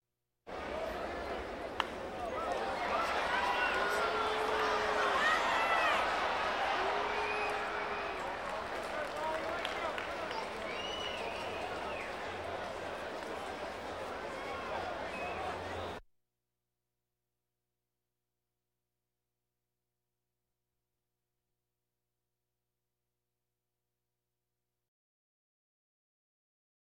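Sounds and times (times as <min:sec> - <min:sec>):
crowds: 0:00.5 - 0:16.0.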